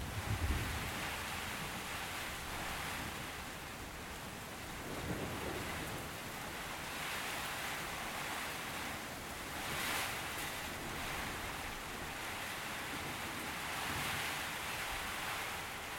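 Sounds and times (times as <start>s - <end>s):
steady rain in a storm: 0.0s - 15.9s.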